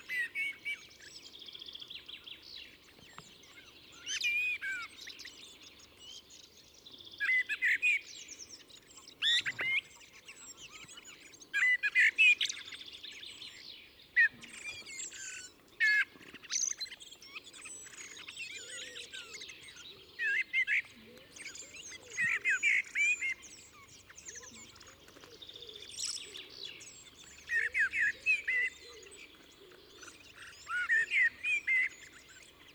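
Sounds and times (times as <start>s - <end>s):
small birds chattering and chirping: 0.0s - 32.7s.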